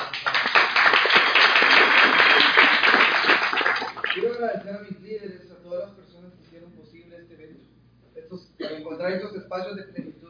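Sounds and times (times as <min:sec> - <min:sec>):
audience applause: 0:00.0 - 0:04.3
speech: 0:04.4 - 0:10.2.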